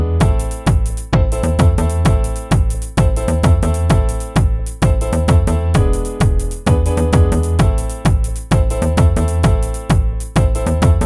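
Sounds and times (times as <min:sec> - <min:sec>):
5-3-4 rhythm pattern: 0:00.2 - 0:11.0.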